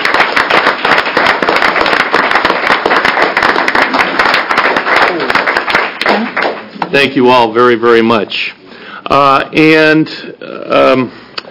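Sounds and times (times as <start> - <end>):
applause: 0.0 - 7.0
speech: 6.9 - 11.2.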